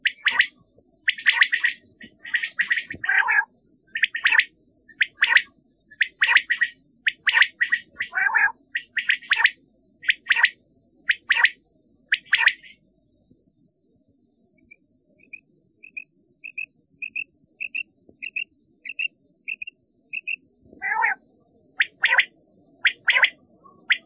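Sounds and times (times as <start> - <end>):
common quail calling: 0.0 - 0.5, 1.1 - 10.5, 20.2 - 21.2, 21.8 - 24.0.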